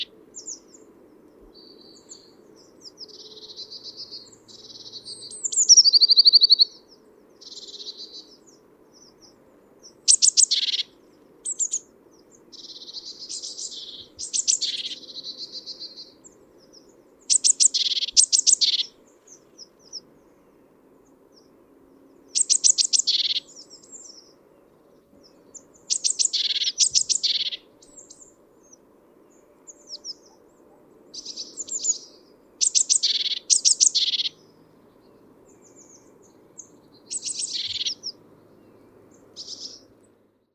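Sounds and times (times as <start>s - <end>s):
great tit chattering: 2.6s - 20.1s, 22.2s - 24.4s, 25.2s - 28.8s, 31.1s - 34.6s, 35.5s - 38.2s, 39.2s - 39.9s.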